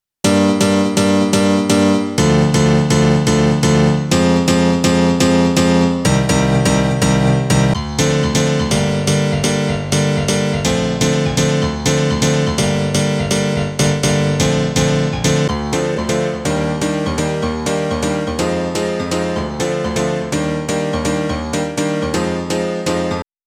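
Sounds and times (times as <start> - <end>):
piano house music: 0.2 - 23.3.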